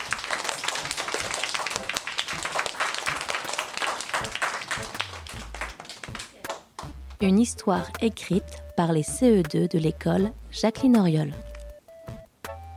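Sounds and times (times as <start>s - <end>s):
applause: 0.0s - 7.2s
speech: 7.2s - 11.5s.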